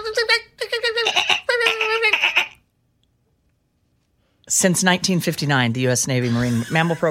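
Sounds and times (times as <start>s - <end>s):
person imitating a dolphin's alert call: 0.8s - 2.6s
speech: 4.6s - 7.0s.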